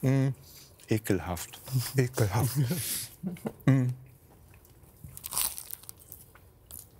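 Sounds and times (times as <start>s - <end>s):
speech: 0.0s - 4.0s
chewing a big bite of sandwich with coleslaw, sweet mustard and braised meat: 4.4s - 6.9s.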